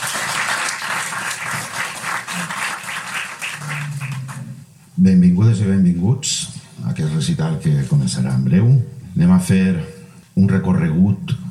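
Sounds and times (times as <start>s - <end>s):
audience applause: 0.0s - 4.6s
speech: 5.0s - 11.4s.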